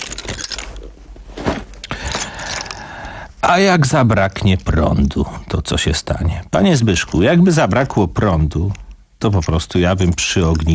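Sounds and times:
keys jangling: 0.0s - 0.8s, 2.0s - 2.9s
speech: 3.5s - 10.7s.

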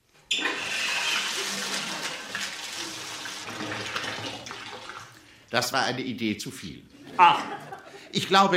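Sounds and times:
cooler water running into a bathtub: 0.3s - 5.7s
speech: 5.5s - 8.5s
laughter: 7.0s - 8.3s.

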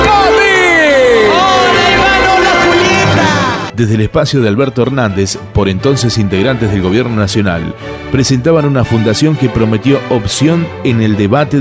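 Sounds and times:
audience applause: 0.0s - 3.7s
speech: 3.8s - 11.5s.

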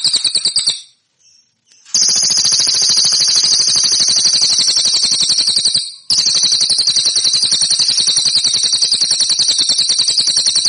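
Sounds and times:
cililin song metallic trill: 0.0s - 10.6s.

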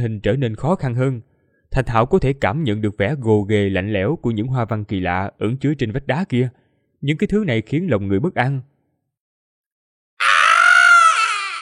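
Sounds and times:
speech: 0.0s - 8.7s
creature screaming while falling from a cliff: 10.2s - 11.5s.

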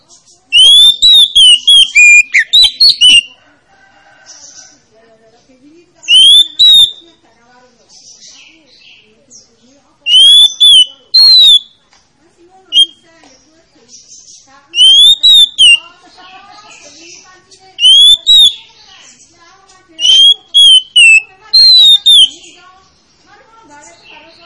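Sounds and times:
Oriental magpie-robin song of bright whistled phrases: 0.0s - 3.4s, 6.0s - 7.1s, 10.1s - 11.8s, 12.7s - 13.0s, 14.0s - 15.8s, 17.8s - 18.9s, 20.0s - 22.6s.

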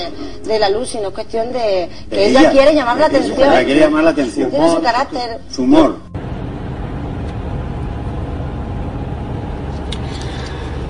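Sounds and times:
speech: 0.0s - 6.1s
Jesús García's car driving at night: 6.1s - 10.8s.

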